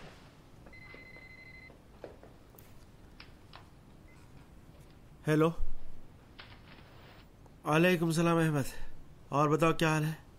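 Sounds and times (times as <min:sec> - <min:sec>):
telephone ringing: 0:00.6 - 0:01.8
speech: 0:05.2 - 0:05.7, 0:07.7 - 0:10.2.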